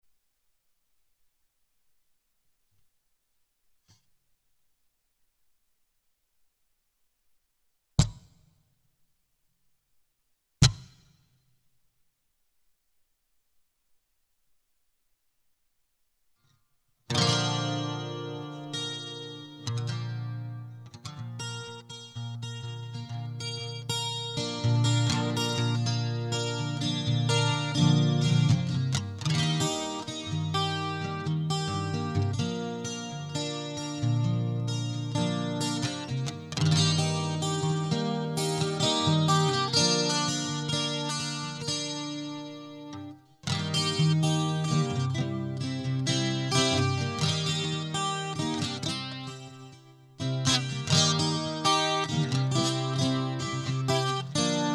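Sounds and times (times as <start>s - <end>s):
instrumental music: 17.1s - 54.7s.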